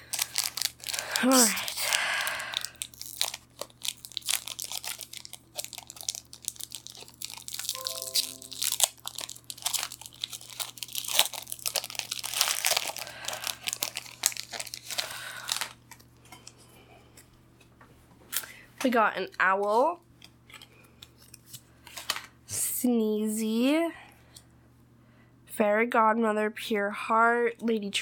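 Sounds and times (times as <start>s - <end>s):
foil trading card pack wrappers crinkling and tearing: 0.0s - 15.8s
speech: 1.2s - 1.7s, 18.8s - 20.1s, 22.8s - 24.0s, 25.6s - 27.9s.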